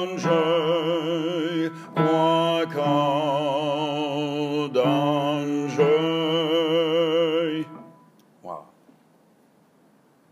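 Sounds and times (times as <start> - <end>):
men singing baritone: 0.0 - 7.8.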